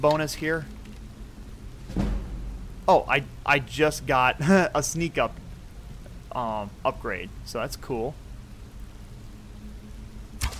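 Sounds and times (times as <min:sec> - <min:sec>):
speech: 0:00.0 - 0:00.8, 0:02.9 - 0:05.4, 0:06.3 - 0:08.2
steady low ambient hum: 0:00.0 - 0:10.5
arrow loosed from a bow in a video game: 0:01.9 - 0:02.5.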